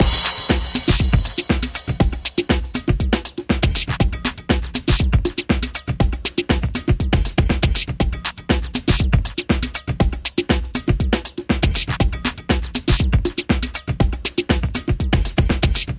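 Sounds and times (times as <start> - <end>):
music beat: 0.0 - 15.9.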